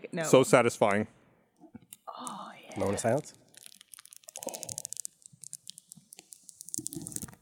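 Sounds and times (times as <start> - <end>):
speech: 0.1 - 1.2, 2.8 - 3.4
peeling adhesive backing off a mouse pad: 3.5 - 7.4.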